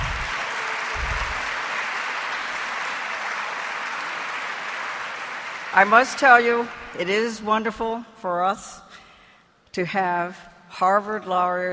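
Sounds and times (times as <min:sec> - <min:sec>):
low thumps: 0:00.0 - 0:00.3, 0:01.0 - 0:01.4
audience applause: 0:00.0 - 0:06.7
speech: 0:05.8 - 0:09.0, 0:09.8 - 0:11.7.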